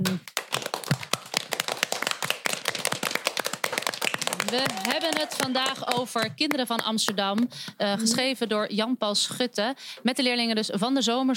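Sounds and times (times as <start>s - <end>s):
audience applause: 0.3s - 6.3s
speech: 4.5s - 11.3s.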